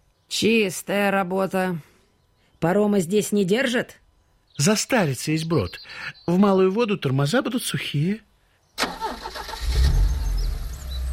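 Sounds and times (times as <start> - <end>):
speech: 0.4 - 1.9, 2.6 - 4.0, 4.6 - 9.0
car engine cranking, starting and rumbling as the vehicle moves off: 8.8 - 11.1.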